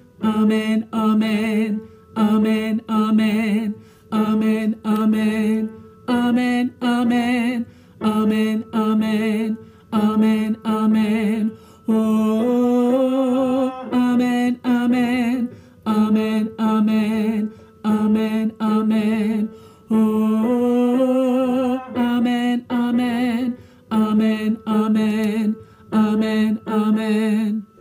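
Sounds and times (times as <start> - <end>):
tenors singing: 0.2 - 27.7.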